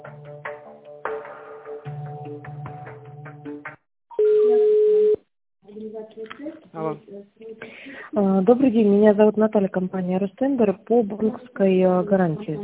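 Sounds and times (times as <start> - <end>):
telephone line tones on an unanswered call: 4.1 - 5.2
speech: 6.7 - 12.6.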